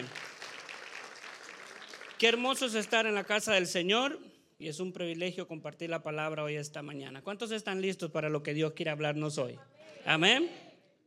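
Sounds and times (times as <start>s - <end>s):
audience applause: 0.0s - 3.4s
speech: 2.2s - 10.6s.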